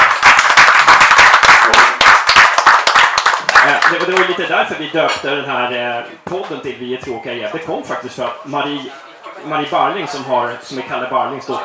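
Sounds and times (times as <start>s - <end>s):
hands clapping: 0.0s - 4.4s
speech: 4.1s - 11.6s.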